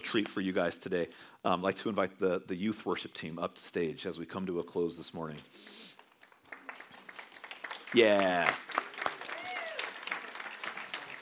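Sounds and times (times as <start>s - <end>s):
speech: 0.1s - 5.9s, 7.9s - 8.8s
church congregation clapping: 5.9s - 11.2s.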